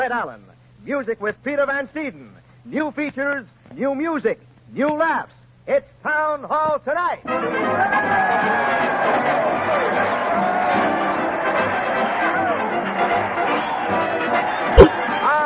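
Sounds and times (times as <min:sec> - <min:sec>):
speech: 0:00.0 - 0:10.6
large crowd cheering and shouting: 0:07.7 - 0:15.4
sharp loud thump: 0:14.8 - 0:15.0.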